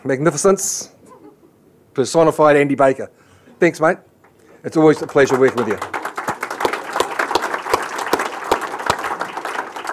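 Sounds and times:
speech: 0:00.0 - 0:01.0, 0:02.0 - 0:06.0
audience applauding: 0:04.8 - 0:09.9.

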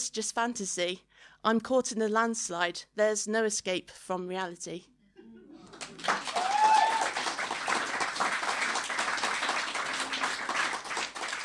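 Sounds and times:
speech: 0:00.1 - 0:04.9
audience applause: 0:05.6 - 0:11.4.

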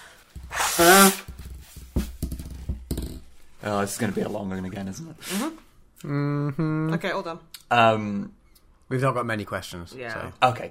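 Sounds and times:
nose blowing: 0:00.4 - 0:01.4
speech: 0:03.6 - 0:10.6.

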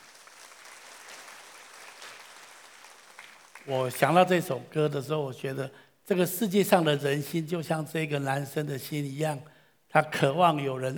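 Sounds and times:
applause: 0:00.0 - 0:04.6
speech: 0:03.6 - 0:10.9.

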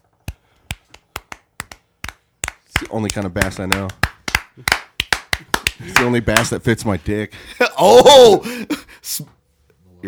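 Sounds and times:
slow clap: 0:00.2 - 0:06.5
speech: 0:02.8 - 0:04.0, 0:04.6 - 0:04.8, 0:05.8 - 0:09.4.

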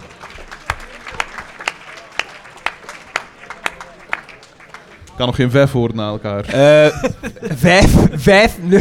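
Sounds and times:
laughter: 0:00.0 - 0:05.2, 0:06.4 - 0:08.7
audience applause: 0:00.0 - 0:05.5
speech: 0:05.2 - 0:08.7.

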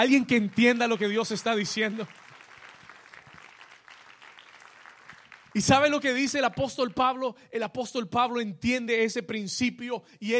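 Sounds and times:
speech: 0:00.0 - 0:02.2, 0:05.6 - 0:10.3
audience applauding: 0:00.0 - 0:06.6.

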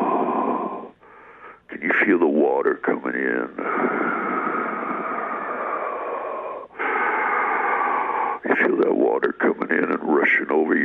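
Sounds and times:
heavy raspy Darth Vader-style breathing imitated by a voice: 0:00.0 - 0:01.7, 0:02.9 - 0:08.8
speech: 0:02.1 - 0:04.2, 0:08.6 - 0:10.8.

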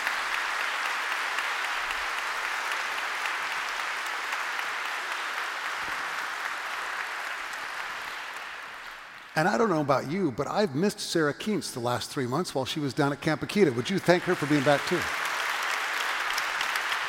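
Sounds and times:
audience applause: 0:00.0 - 0:09.8, 0:13.5 - 0:17.0
speech: 0:09.4 - 0:15.2.

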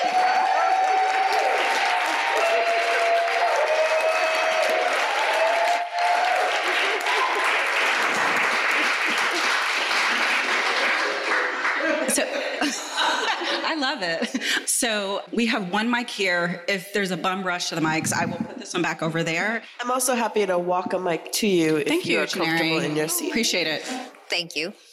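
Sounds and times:
audience applauding: 0:00.0 - 0:13.6
laughter: 0:06.6 - 0:14.7, 0:21.9 - 0:24.2
speech: 0:14.0 - 0:24.9.

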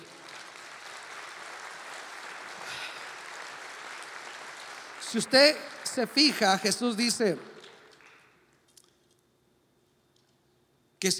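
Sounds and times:
audience applause: 0:00.0 - 0:08.4
speech: 0:05.1 - 0:07.5.

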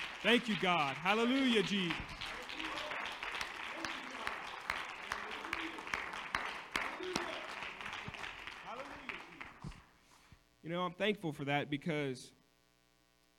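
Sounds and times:
audience clapping hands in praise: 0:00.0 - 0:10.0
speech: 0:00.2 - 0:02.2, 0:10.7 - 0:12.4.

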